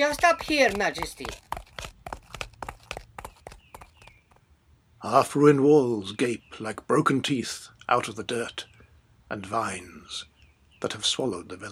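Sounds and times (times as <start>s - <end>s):
speech: 0.0s - 1.5s, 5.0s - 8.7s, 9.3s - 11.7s
hoofbeats of riding horses: 0.0s - 4.4s.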